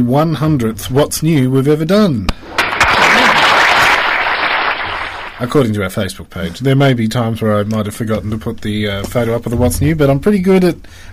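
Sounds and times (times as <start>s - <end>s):
speech: 0.0s - 2.5s, 5.4s - 11.1s
dense clapping: 2.3s - 5.5s.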